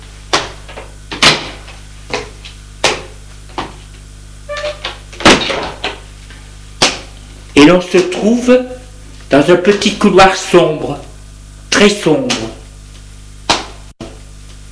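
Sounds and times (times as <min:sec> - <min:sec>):
glass door opening: 0:04.5 - 0:05.6
speech: 0:07.6 - 0:11.1, 0:11.8 - 0:12.6.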